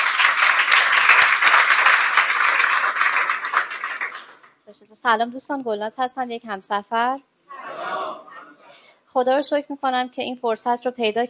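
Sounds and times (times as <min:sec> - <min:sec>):
audience applause at a Persian-language gathering: 0:00.0 - 0:04.5
speech: 0:05.0 - 0:07.3, 0:09.2 - 0:11.2.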